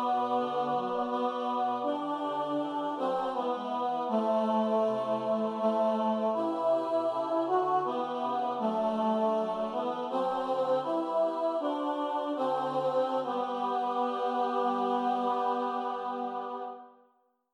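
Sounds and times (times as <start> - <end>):
choir singing with emphasized tenor at tempo: 0.0 - 17.0.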